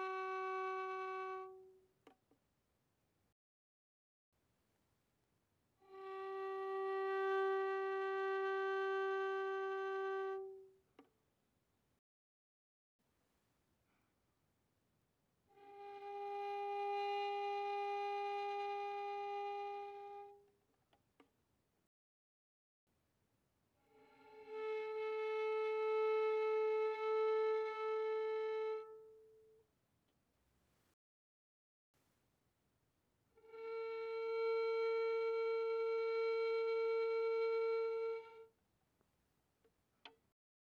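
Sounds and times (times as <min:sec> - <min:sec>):
violin arco pianissimo on the D string: 0:00.0 - 0:01.8, 0:05.8 - 0:10.7, 0:15.6 - 0:20.4, 0:23.9 - 0:29.5, 0:33.4 - 0:38.5.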